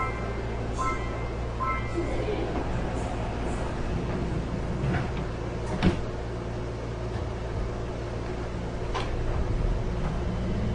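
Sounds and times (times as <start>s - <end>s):
subway train doors closing: 0.0s - 10.6s.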